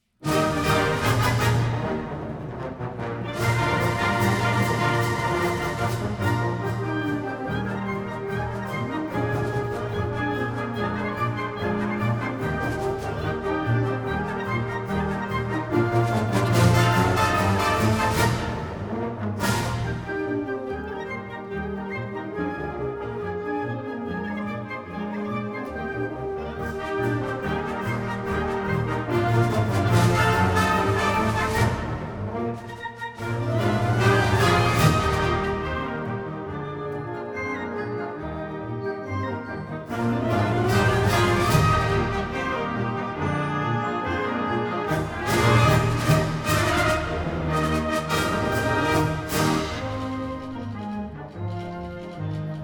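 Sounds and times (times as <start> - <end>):
wind band playing: 0.2 - 52.6.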